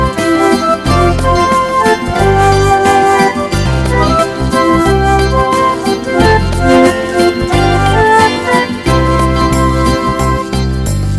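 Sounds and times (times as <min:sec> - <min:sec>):
smooth improvised music: 0:00.0 - 0:11.1.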